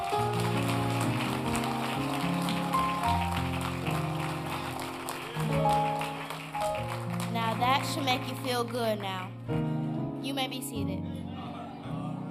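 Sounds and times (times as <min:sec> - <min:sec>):
audience hand clapping: 0:00.0 - 0:09.5
speech: 0:08.0 - 0:11.4.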